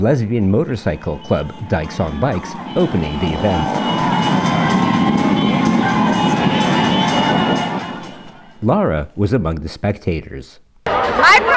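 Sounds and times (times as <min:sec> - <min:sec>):
speech: 0:00.0 - 0:04.1, 0:08.6 - 0:11.5
parade crowd cheering: 0:00.4 - 0:08.7.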